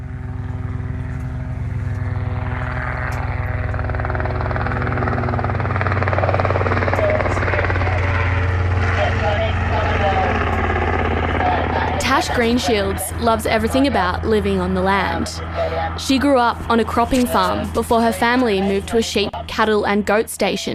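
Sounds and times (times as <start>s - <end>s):
helicopter flying overhead: 0.0s - 20.7s
faint voices murmuring: 6.0s - 20.7s
speech: 12.4s - 20.7s.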